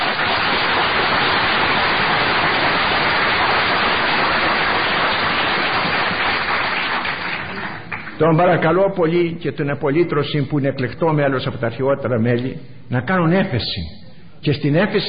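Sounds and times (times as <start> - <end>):
audience applause: 0.0 - 8.2
speech: 8.2 - 15.0.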